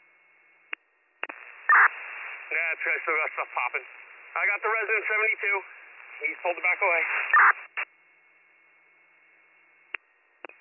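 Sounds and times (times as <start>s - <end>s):
radio static: 1.2s - 7.9s
speech: 2.5s - 7.9s.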